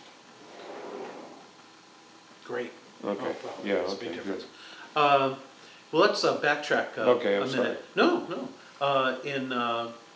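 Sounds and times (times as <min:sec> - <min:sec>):
kitchen sliding door being closed: 0:00.0 - 0:01.6
speech: 0:02.5 - 0:10.0.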